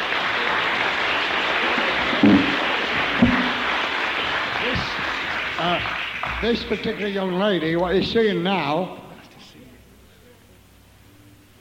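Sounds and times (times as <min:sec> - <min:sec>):
audience applause: 0:00.0 - 0:08.2
speech: 0:05.6 - 0:09.0.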